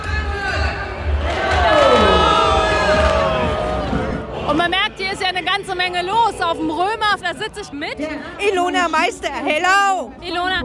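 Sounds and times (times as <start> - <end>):
carnival parade crowd cheering and shouting: 0.0 - 6.3
crowd chatter: 0.6 - 10.6
speech: 5.6 - 10.6.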